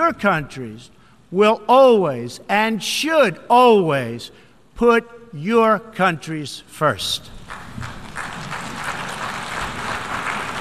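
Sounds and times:
speech: 0:00.0 - 0:08.0
crowd applauding: 0:07.4 - 0:10.5.

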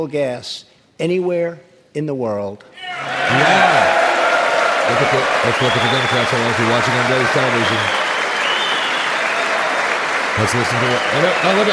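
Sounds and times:
speech: 0:00.0 - 0:04.1, 0:04.9 - 0:08.0, 0:10.4 - 0:11.7
large group clapping in a legislative chamber: 0:03.6 - 0:11.7.

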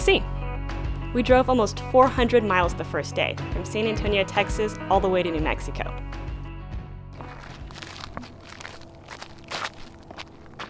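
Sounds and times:
speech: 0:00.0 - 0:00.4, 0:01.1 - 0:06.0
footsteps walking toward the Texas–New Mexico border: 0:07.2 - 0:10.6.

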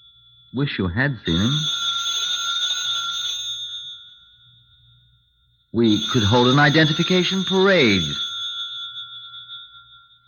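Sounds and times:
speech: 0:00.5 - 0:01.8, 0:05.8 - 0:08.3
telephone ringing: 0:01.3 - 0:04.3, 0:05.8 - 0:09.9.

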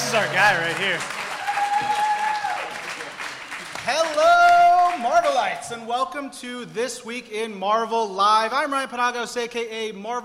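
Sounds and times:
audience clapping: 0:00.0 - 0:05.8
speech: 0:00.1 - 0:01.2, 0:03.9 - 0:10.2.

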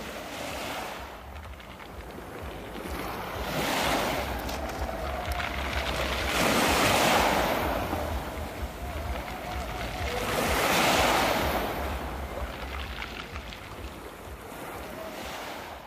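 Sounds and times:
waves washing up a pebble beach and draining through the stones: 0:00.0 - 0:15.8.

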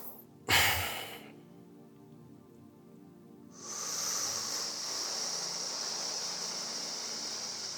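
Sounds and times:
loud deliberate breathing: 0:00.0 - 0:01.4, 0:03.6 - 0:07.6.

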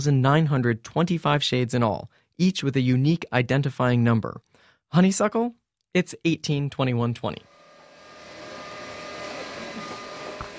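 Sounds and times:
speech: 0:00.0 - 0:07.5
stainless steel dyeing machines humming: 0:07.5 - 0:10.5
steam from dyeing machines: 0:07.5 - 0:10.5.

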